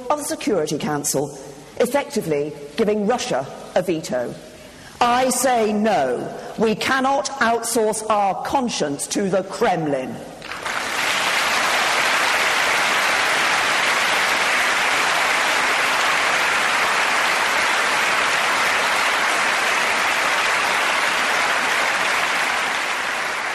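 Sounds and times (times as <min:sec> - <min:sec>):
speech: 0:00.1 - 0:10.3
long audience applause: 0:10.4 - 0:23.5.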